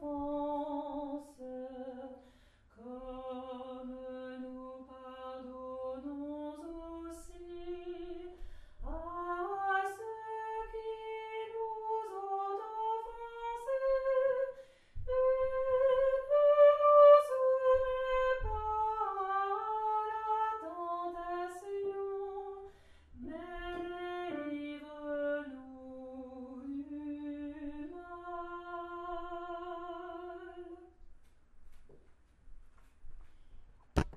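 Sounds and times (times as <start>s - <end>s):
soprano singing a prayer: 0.0s - 2.2s, 2.8s - 30.9s.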